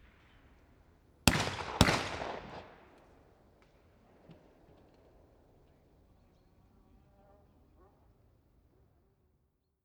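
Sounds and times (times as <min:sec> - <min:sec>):
gunshots at a shooting range: 0:01.2 - 0:03.2.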